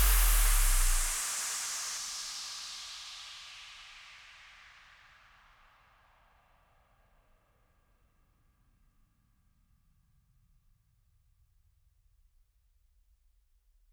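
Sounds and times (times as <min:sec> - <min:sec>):
trap beat: 0:00.0 - 0:01.2.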